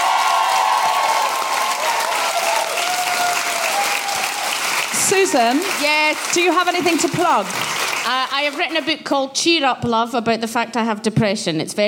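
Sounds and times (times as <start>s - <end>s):
faint whoops and cheers: 0.0s - 4.7s
large audience applauding: 0.0s - 9.0s
speech: 5.1s - 11.8s.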